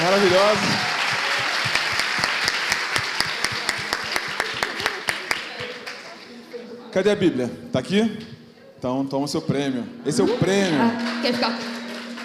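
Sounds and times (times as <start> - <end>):
audience applause: 0.0 - 6.4, 10.4 - 12.2
speech: 0.1 - 0.8, 7.0 - 11.8.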